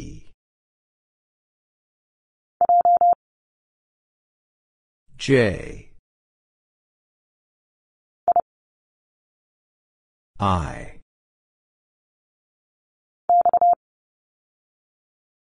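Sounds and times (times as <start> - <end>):
morse code letter x: 2.6 - 3.2, 13.3 - 13.8.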